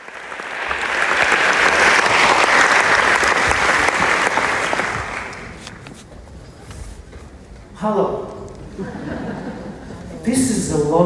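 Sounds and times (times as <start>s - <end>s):
thunderous applause: 0.0s - 5.8s
speech: 7.8s - 8.9s, 10.3s - 11.0s
laughter: 8.6s - 10.2s.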